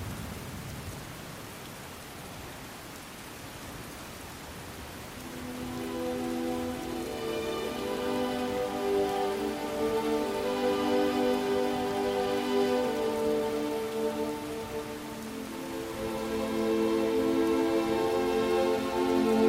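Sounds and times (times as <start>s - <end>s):
steady rain hiss: 0.0s - 19.4s
slow sustained music chords: 5.2s - 19.4s.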